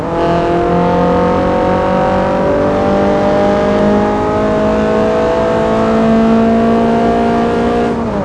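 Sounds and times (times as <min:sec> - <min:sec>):
vehicles: 0:00.0 - 0:08.2.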